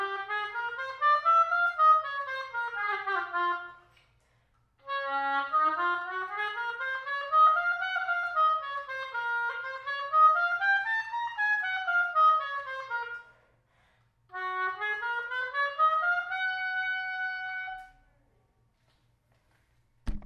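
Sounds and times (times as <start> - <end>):
oboe playing a scale: 0.0 - 4.0, 4.8 - 13.4, 14.3 - 18.0.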